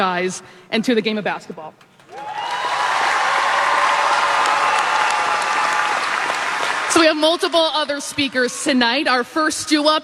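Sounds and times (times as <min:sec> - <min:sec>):
speech: 0:00.0 - 0:02.4, 0:07.0 - 0:10.0
arena crowd cheering and applauding: 0:01.4 - 0:07.2.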